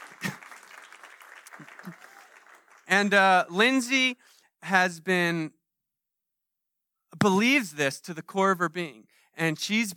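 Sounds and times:
audience applause: 0:00.0 - 0:02.9
speech: 0:02.9 - 0:05.6, 0:07.2 - 0:09.9.

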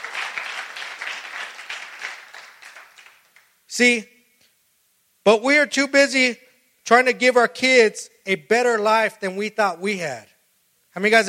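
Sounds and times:
audience clapping: 0:00.0 - 0:03.6
speech: 0:03.8 - 0:04.1, 0:05.3 - 0:10.3, 0:11.0 - 0:11.2.

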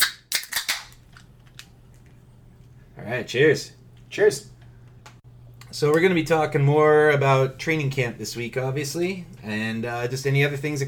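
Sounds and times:
beer cans cracking open: 0:00.0 - 0:02.2
speech: 0:03.1 - 0:04.5, 0:05.8 - 0:10.8.

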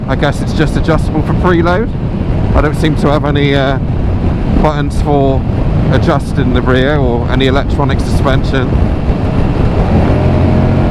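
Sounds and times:
motorcycle engine rumbling: 0:00.0 - 0:10.8
speech: 0:00.1 - 0:09.1.

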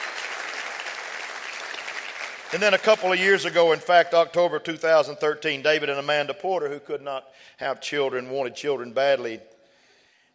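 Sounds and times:
audience applause: 0:00.0 - 0:03.8
speech: 0:02.5 - 0:09.5.

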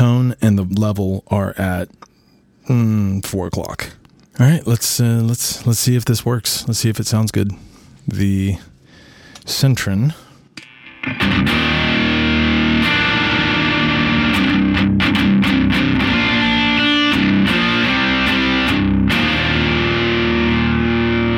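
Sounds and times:
speech: 0:00.3 - 0:02.1, 0:02.7 - 0:08.7, 0:09.4 - 0:10.2
electric guitar through overdrive pedal: 0:10.6 - 0:21.3.

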